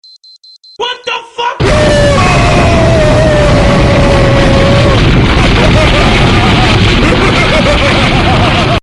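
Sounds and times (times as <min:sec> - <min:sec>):
boom: 0:01.6 - 0:08.8
laughter: 0:05.4 - 0:08.8.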